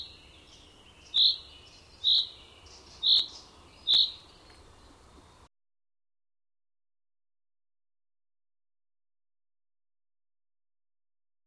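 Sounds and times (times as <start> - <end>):
bird chirping: 0.0 - 5.5.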